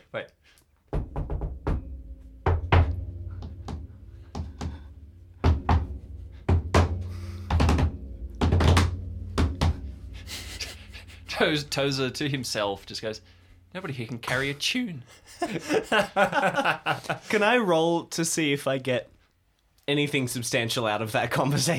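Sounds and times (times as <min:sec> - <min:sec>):
speech: 0:00.1 - 0:00.6, 0:11.4 - 0:19.1, 0:19.9 - 0:21.7
person banging on a roof: 0:00.9 - 0:12.3
laughter: 0:15.1 - 0:17.3.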